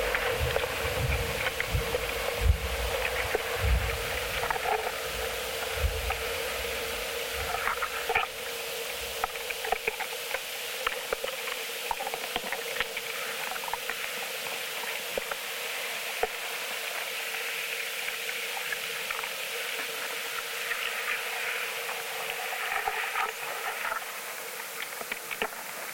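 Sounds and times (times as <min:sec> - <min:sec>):
soft low thumps and rumbles: 0:00.0 - 0:04.4
steady dense hiss of a coastal dunescape: 0:00.0 - 0:25.9
tiny ticks and crackles: 0:00.0 - 0:25.9.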